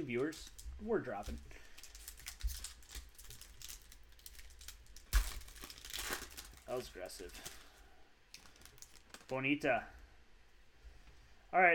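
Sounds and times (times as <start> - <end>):
speech: 0.0 - 1.7, 6.7 - 7.6, 9.3 - 10.0, 11.5 - 11.7
foil trading card pack wrapper crinkling: 0.0 - 9.4
trading card pack wrapper tearing open: 1.3 - 9.3.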